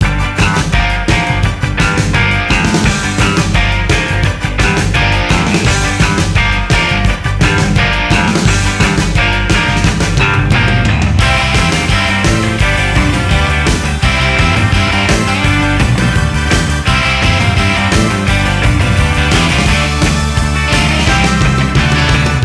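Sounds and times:
Nintendo DS game music: 0.4s - 22.4s.

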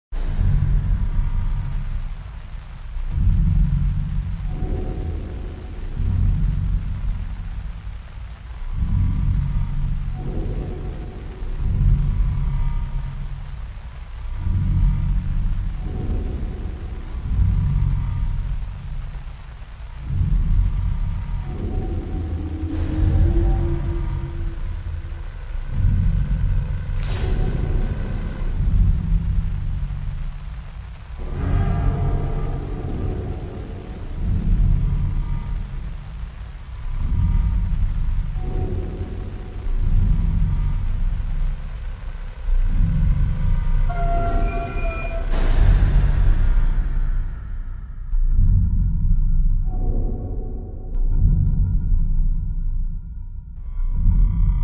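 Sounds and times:
ambient horror music: 0.1s - 54.6s.

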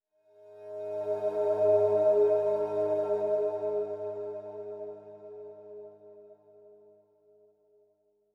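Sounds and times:
calm synth pad: 0.4s - 6.2s.

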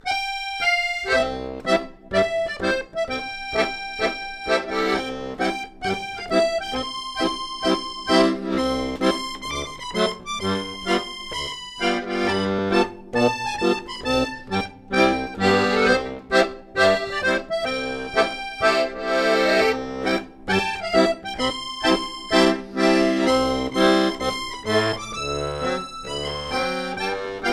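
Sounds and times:
accordion: 0.0s - 27.5s.

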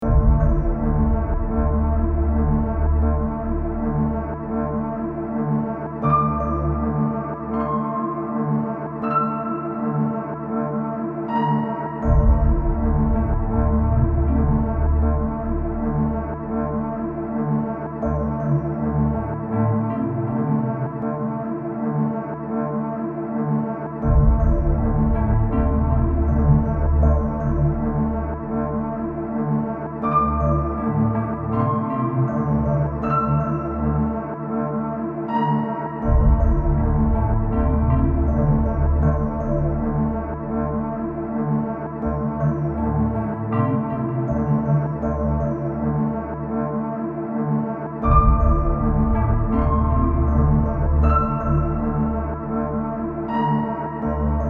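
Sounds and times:
eldritch spooky sound: 0.0s - 54.4s.

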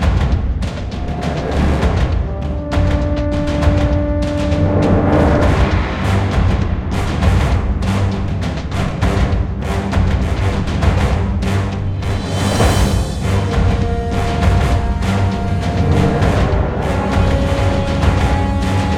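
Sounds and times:
combat music: 0.1s - 18.9s.

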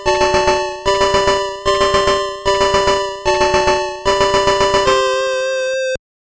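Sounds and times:
jingle: 0.1s - 6.0s.

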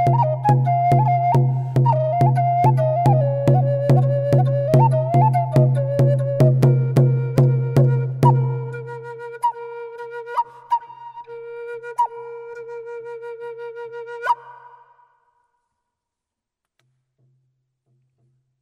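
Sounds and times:
percussion: 0.0s - 8.8s
North American flute: 0.0s - 15.5s.

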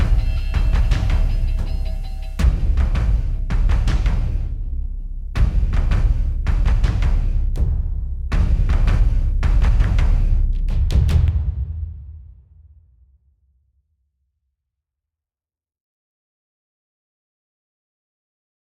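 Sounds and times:
combat music loop: 0.0s - 11.1s.

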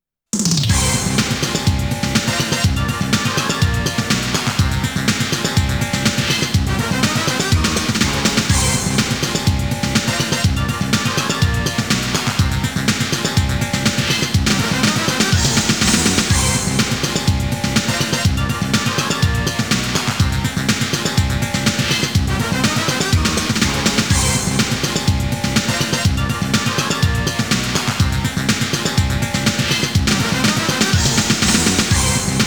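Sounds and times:
stage select background music: 0.7s - 32.4s.

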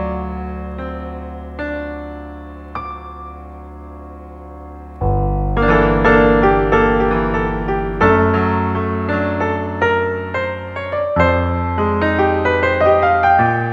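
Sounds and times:
jazz music: 4.9s - 13.7s.

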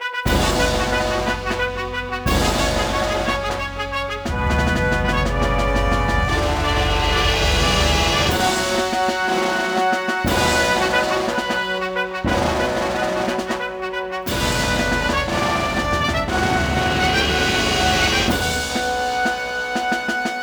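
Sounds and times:
victory jingle: 0.2s - 20.3s.

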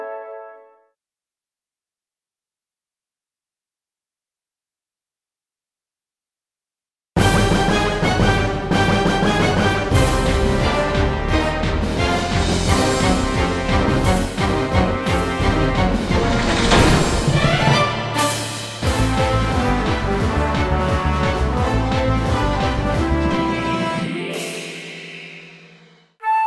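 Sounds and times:
intro music: 7.2s - 26.3s.

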